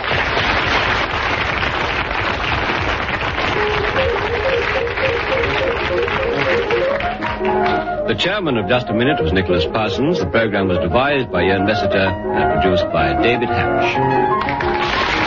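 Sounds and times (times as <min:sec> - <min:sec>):
studio audience applause: 0:00.0 - 0:08.0, 0:14.3 - 0:15.2
speech: 0:08.1 - 0:14.7.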